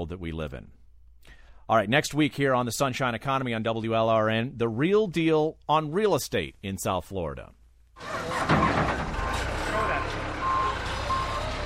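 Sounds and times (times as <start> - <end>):
speech: 0.0 - 8.3
heavy end loader engines revving at construction site: 8.0 - 11.6
reversing alarm beeping: 8.3 - 11.6.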